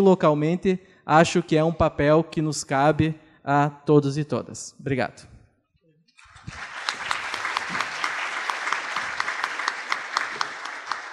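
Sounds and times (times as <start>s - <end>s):
speech: 0.0s - 5.3s
audience applause: 6.2s - 11.1s.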